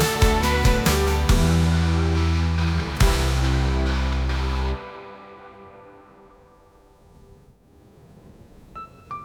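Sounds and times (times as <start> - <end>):
jingle: 0.0 - 6.2.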